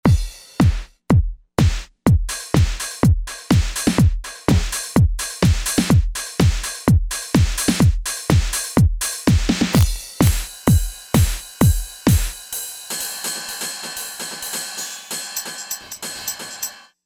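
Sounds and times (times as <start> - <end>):
techno drum kit: 0.0 - 16.8.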